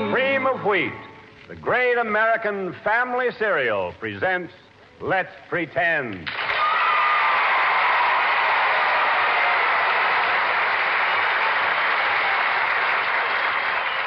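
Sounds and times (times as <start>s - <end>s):
speech: 0.2s - 6.4s
audience applause: 6.2s - 14.0s.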